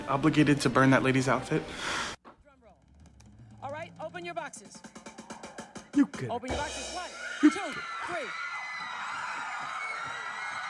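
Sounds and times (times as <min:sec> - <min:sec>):
speech: 0:00.1 - 0:02.2, 0:04.2 - 0:05.0, 0:06.0 - 0:08.5
studio audience of women screaming: 0:07.1 - 0:10.6.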